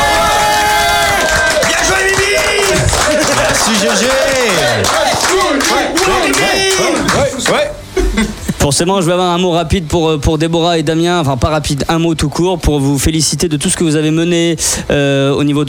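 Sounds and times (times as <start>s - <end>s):
crowd clapping: 0.0s - 7.7s
speech: 8.7s - 15.6s.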